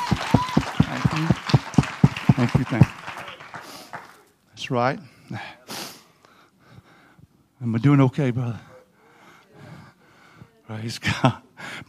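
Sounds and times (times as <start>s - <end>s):
audience clapping: 0.0s - 4.4s
speech: 2.4s - 3.0s, 4.7s - 5.6s, 7.6s - 8.7s, 10.7s - 11.8s.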